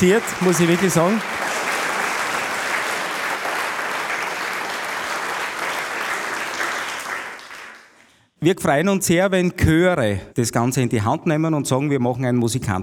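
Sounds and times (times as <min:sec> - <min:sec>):
speech: 0:00.0 - 0:01.4, 0:08.4 - 0:12.8
audience applause: 0:00.0 - 0:08.1.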